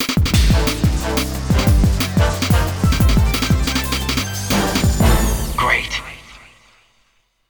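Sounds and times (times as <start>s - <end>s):
alternative mission completed jingle: 0.5s - 6.4s.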